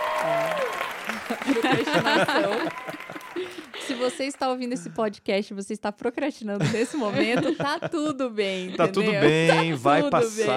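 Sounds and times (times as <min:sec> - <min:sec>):
applause: 0:00.0 - 0:04.6
laughter: 0:01.0 - 0:05.0, 0:06.6 - 0:10.5
speech: 0:01.3 - 0:10.5.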